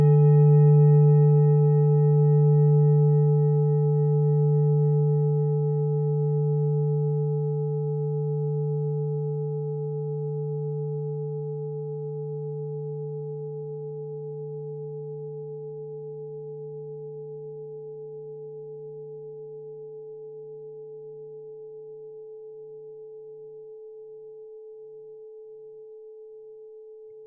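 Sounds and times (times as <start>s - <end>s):
set of singing bowls: 0.0s - 15.4s.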